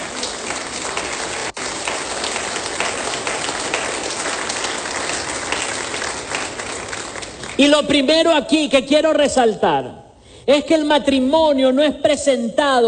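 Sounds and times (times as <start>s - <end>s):
audience applause: 0.0s - 7.7s
speech: 7.6s - 12.8s.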